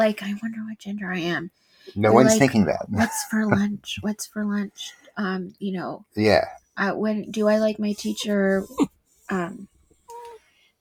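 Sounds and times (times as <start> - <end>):
speech: 0.0 - 9.7
dog whining to be let outside: 7.8 - 9.5.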